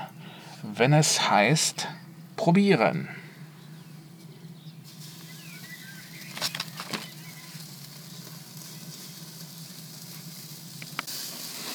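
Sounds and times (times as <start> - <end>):
speech: 0.6 - 3.2
bacon-wrapped skewers sizzling on a grill: 4.8 - 11.7.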